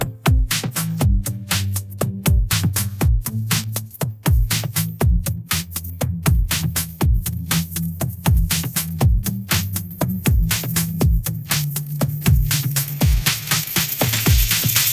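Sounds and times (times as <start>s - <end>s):
ringtone: 0.0s - 14.9s.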